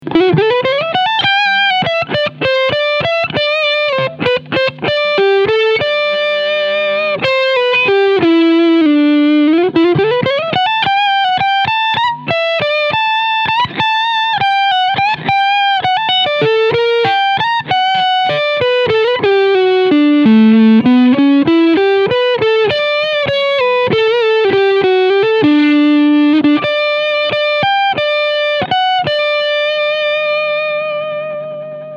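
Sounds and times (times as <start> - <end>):
Squier Telecaster lead sound with both pickups: 0.0 - 31.9.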